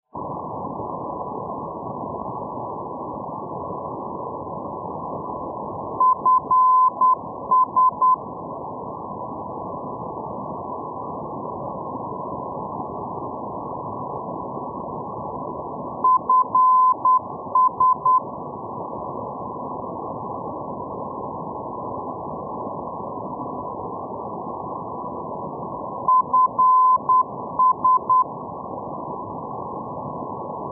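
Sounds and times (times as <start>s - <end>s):
non-directional beacon radio signal: 6.0s - 8.2s, 16.0s - 18.2s, 26.0s - 28.3s.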